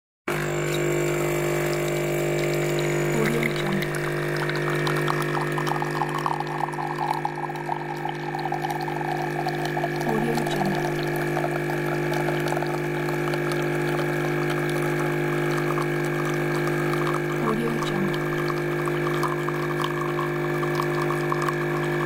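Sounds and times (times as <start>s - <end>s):
coffee making: 0.3s - 22.0s.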